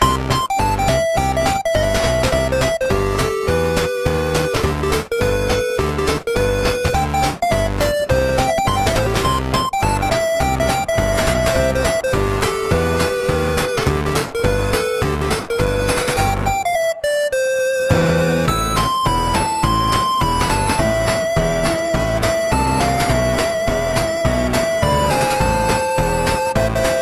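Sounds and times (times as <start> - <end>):
chiptune music: 0.0 - 26.9.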